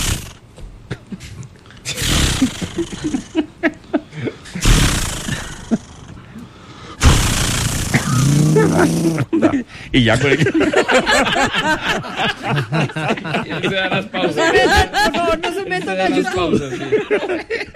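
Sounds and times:
laughter: 0:00.9 - 0:04.6, 0:08.4 - 0:17.7
voice imitating a chainsaw: 0:01.9 - 0:03.2, 0:04.6 - 0:06.0, 0:07.0 - 0:09.4
speech: 0:02.8 - 0:03.8, 0:08.8 - 0:17.7.

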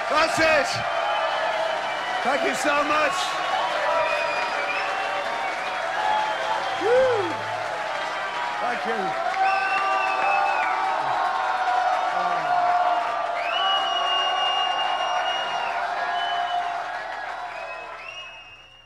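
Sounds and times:
crowd cheering and whooping: 0:00.0 - 0:18.5
speech: 0:00.1 - 0:01.0, 0:02.2 - 0:03.5, 0:06.8 - 0:07.1, 0:08.6 - 0:09.3
whistles: 0:00.9 - 0:07.5, 0:09.4 - 0:10.8, 0:13.3 - 0:18.8.

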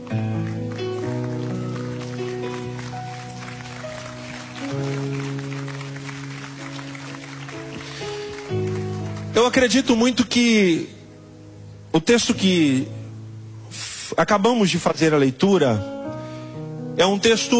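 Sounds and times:
audience applauding: 0:00.0 - 0:10.0
speech: 0:09.4 - 0:11.0, 0:12.0 - 0:13.0, 0:14.2 - 0:15.9, 0:17.0 - 0:17.5.

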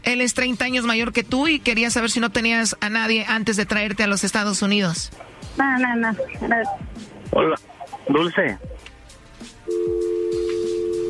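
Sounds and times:
speech: 0:00.1 - 0:08.8
steady telephone tone after a call is hung up: 0:09.7 - 0:11.0.

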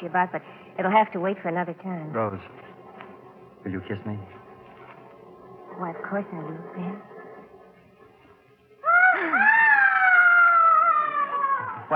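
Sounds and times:
speech: 0:00.0 - 0:02.8, 0:03.6 - 0:04.4, 0:05.8 - 0:07.1
loud high-pitched scream from upstairs: 0:08.8 - 0:11.9
low vocal cry: 0:08.8 - 0:11.9.

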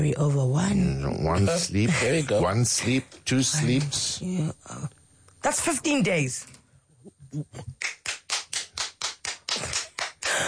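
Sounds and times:
speech: 0:00.0 - 0:06.6, 0:07.3 - 0:08.0
single hand clap: 0:07.8 - 0:10.4.

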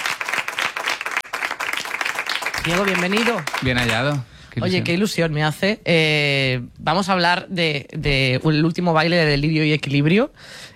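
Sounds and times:
group applause for arriving guest: 0:00.0 - 0:04.3
speech: 0:02.6 - 0:10.7.

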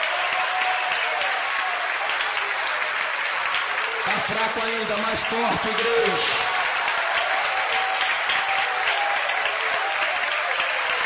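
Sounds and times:
audience applauding: 0:00.0 - 0:11.0
speech: 0:04.3 - 0:06.5.

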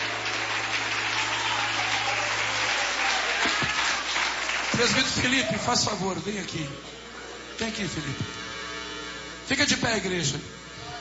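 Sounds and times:
audience applauding: 0:00.0 - 0:05.8
speech: 0:04.8 - 0:07.0, 0:07.6 - 0:08.4, 0:09.5 - 0:10.6.

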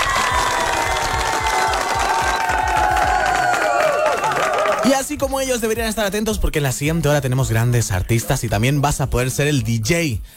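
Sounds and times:
applause: 0:00.0 - 0:05.1
speech: 0:05.1 - 0:10.3.

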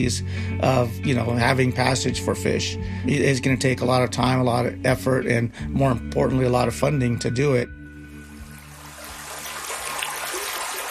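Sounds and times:
speech: 0:00.0 - 0:07.8
mountain stream water flowing: 0:08.1 - 0:10.8.

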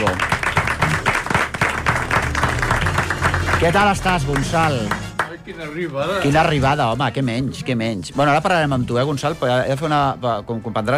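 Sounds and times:
audience applause for an arriving guest: 0:00.0 - 0:05.4
speech: 0:03.6 - 0:10.9.

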